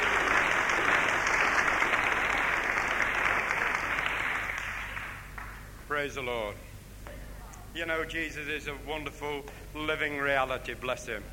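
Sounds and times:
audience clapping: 0.0s - 5.8s
speech: 6.0s - 6.7s, 7.7s - 11.3s.

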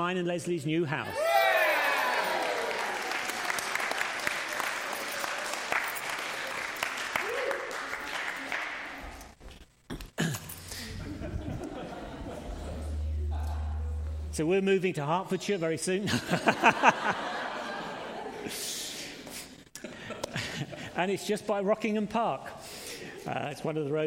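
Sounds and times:
speech: 0.0s - 1.3s, 14.4s - 17.4s, 21.0s - 22.6s, 23.2s - 24.0s
large crowd applauding and cheering: 1.1s - 9.0s
laughter: 10.6s - 14.0s, 16.0s - 18.7s, 19.8s - 21.0s
low murmurs: 10.7s - 14.7s.

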